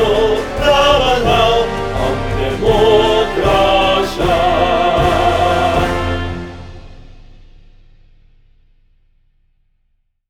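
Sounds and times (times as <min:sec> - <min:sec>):
march song: 0:00.0 - 0:07.4.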